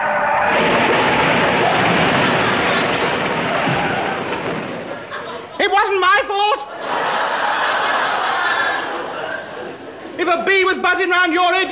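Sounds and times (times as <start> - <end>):
car crash sound effects: 0.0 - 5.6
laughter: 1.1 - 6.0, 6.6 - 10.2
speech: 10.9 - 11.7.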